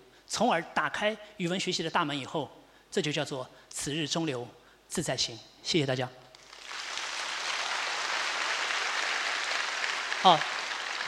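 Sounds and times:
speech: 0.3 - 6.2, 10.2 - 10.5
audience applause: 6.4 - 11.0.

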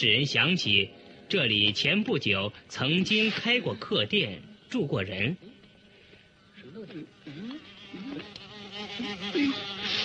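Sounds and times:
speech: 0.0 - 5.6, 6.8 - 10.0
wasps buzzing around a wasp nest: 2.8 - 10.0.

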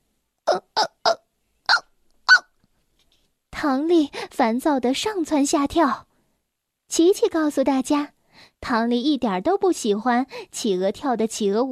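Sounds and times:
hiccups: 0.5 - 2.5
speech: 3.6 - 6.1, 6.9 - 11.7.

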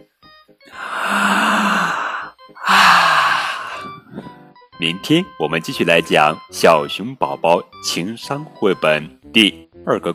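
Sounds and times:
yawn: 0.7 - 3.9
speech: 4.8 - 10.1.

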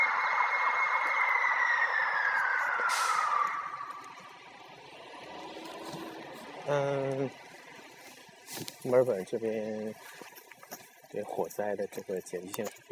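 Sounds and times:
fire engine siren passing by: 0.0 - 5.2
low rumble of traffic: 0.0 - 12.9
speech: 2.9 - 3.2, 6.7 - 7.5, 8.8 - 10.3, 11.1 - 12.9.

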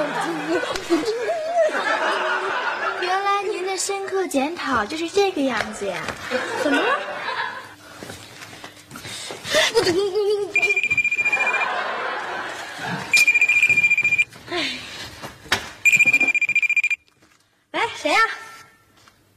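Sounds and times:
laughter: 0.0 - 3.2, 6.2 - 7.8, 9.5 - 13.8
speech: 3.9 - 7.3, 9.8 - 11.7, 18.0 - 18.4
mobile phone ringing: 10.6 - 11.8, 13.1 - 14.3, 15.9 - 17.0.

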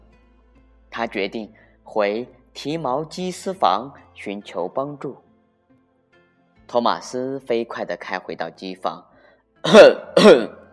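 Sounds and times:
speech: 1.0 - 5.2, 6.7 - 10.6
man clearing throat: 9.7 - 10.7.

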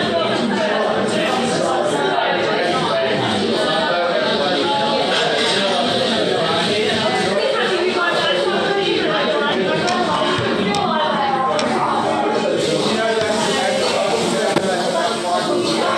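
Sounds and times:
babble of many voices in a local Vietnamese restaurant: 0.0 - 15.9.

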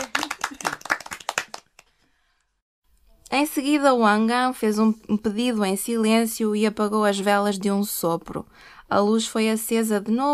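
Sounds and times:
round of applause: 0.0 - 2.1
speech: 3.3 - 10.3.

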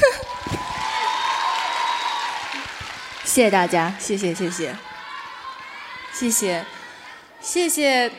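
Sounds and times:
audience applause: 0.0 - 6.2
speech: 3.4 - 4.9, 6.2 - 6.8, 7.4 - 8.1.

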